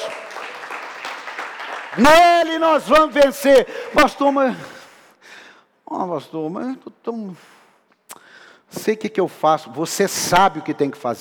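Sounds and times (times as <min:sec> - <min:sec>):
audience applause: 0:00.0 - 0:02.6
speech: 0:02.0 - 0:04.8, 0:05.9 - 0:07.6, 0:08.7 - 0:11.1.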